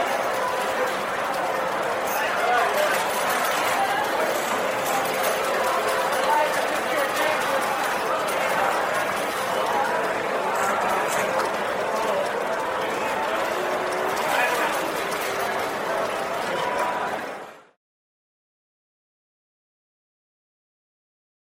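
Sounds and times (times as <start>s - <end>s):
casino ambience: 0.0s - 17.8s.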